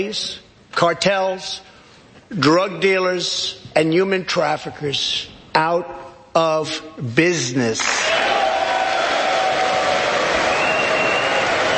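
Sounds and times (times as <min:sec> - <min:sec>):
speech: 0:00.0 - 0:01.7, 0:02.3 - 0:08.3
large audience clapping: 0:07.8 - 0:11.7
faint cheering: 0:08.0 - 0:11.7.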